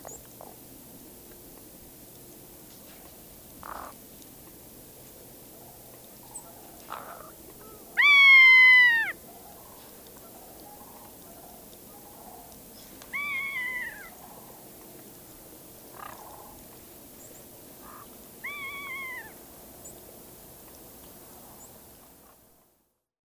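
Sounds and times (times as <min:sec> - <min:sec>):
Ferruginous Hawk Buteo regalis calling: 0:06.9 - 0:09.2, 0:13.1 - 0:14.3, 0:17.8 - 0:19.3.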